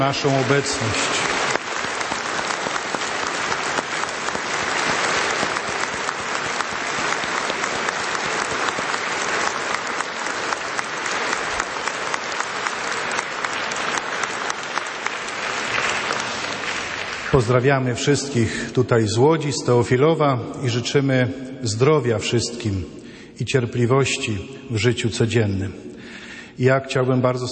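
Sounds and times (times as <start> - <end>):
speech: 0.0 - 1.3, 17.4 - 26.0, 26.6 - 27.4
audience applauding: 0.0 - 17.8.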